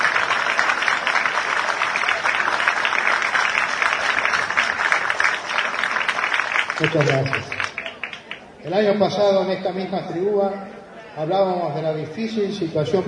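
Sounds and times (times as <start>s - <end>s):
memorial applause from the audience: 0.0s - 8.5s
speech: 6.8s - 7.6s, 8.6s - 13.0s.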